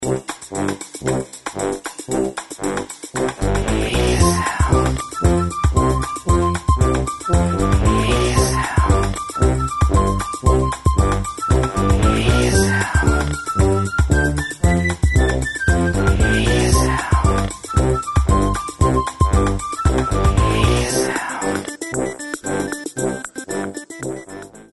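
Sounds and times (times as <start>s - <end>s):
upbeat music at 115 BPM: 0.0s - 24.7s.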